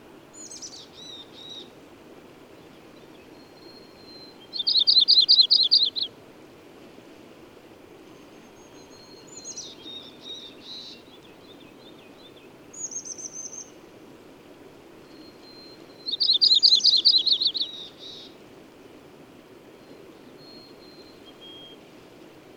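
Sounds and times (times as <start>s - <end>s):
bird song: 0.4s - 1.7s, 2.6s - 6.1s, 8.1s - 13.8s, 15.0s - 18.4s, 19.8s - 21.8s.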